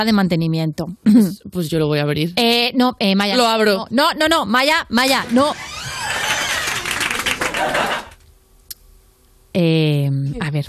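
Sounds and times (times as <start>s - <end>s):
speech: 0.0s - 5.8s, 9.5s - 10.6s
loud applause like an audience: 5.7s - 8.2s.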